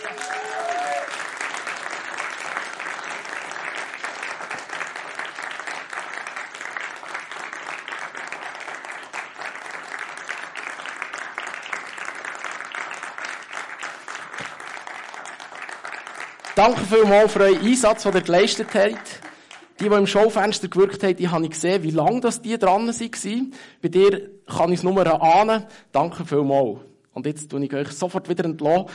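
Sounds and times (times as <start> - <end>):
audience applause: 0.0 - 20.4
speech: 16.6 - 19.2, 19.8 - 28.9.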